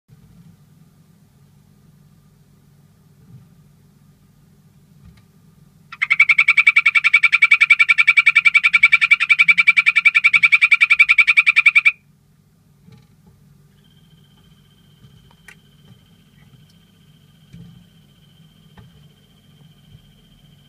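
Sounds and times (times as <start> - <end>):
golden poison frog chirping trill: 5.9 - 12.0, 13.8 - 20.6.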